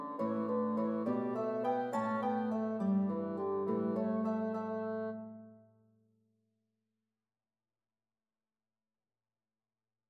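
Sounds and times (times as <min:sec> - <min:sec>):
bassoon: 0:00.0 - 0:05.4
harp: 0:00.0 - 0:05.4.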